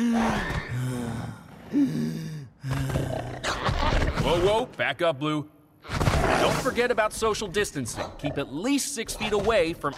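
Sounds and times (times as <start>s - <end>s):
person acting out labored raspy breathing with gasps: 0.0s - 3.4s
speech: 1.7s - 3.2s, 4.2s - 5.6s, 6.2s - 9.9s.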